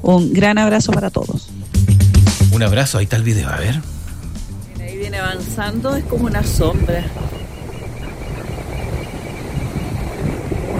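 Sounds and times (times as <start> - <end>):
speech: 0.0 - 1.5, 2.5 - 4.0, 5.0 - 7.4
sea waves: 3.8 - 10.7.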